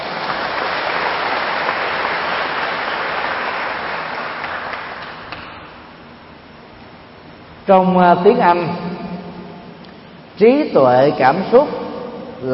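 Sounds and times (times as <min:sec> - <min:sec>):
audience applause: 0:00.0 - 0:05.5
speech: 0:07.7 - 0:09.0, 0:10.4 - 0:11.8.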